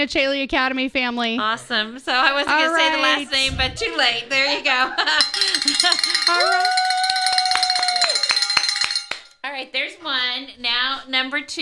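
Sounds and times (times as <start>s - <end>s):
speech: 0.0s - 6.9s, 9.5s - 11.6s
bell ringing: 5.2s - 9.4s.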